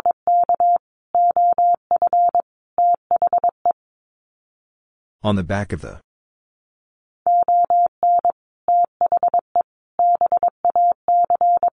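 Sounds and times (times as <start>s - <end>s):
Morse code beeps at 22wpm: 0.0s - 3.6s, 7.3s - 9.4s, 10.0s - 11.7s
person speaking: 5.2s - 6.0s.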